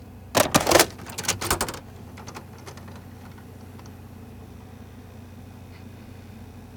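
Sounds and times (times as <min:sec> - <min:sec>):
Panasonic PV-V4020 tape insertion: 0:00.4 - 0:03.9.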